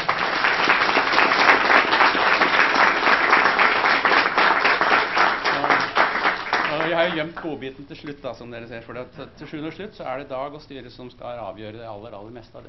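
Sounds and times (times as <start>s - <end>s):
audience clapping: 0.0s - 7.6s
speech: 7.0s - 12.6s.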